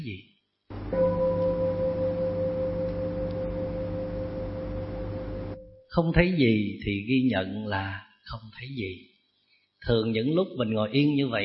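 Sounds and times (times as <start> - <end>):
speech: 0.0 - 1.0, 5.9 - 9.1, 9.8 - 11.4
meditation bell ringing: 0.9 - 6.0.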